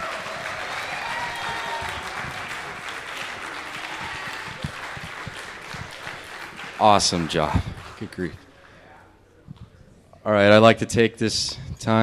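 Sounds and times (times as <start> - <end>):
audience clapping: 0.0 - 8.8
speech: 6.8 - 8.4, 10.3 - 12.0.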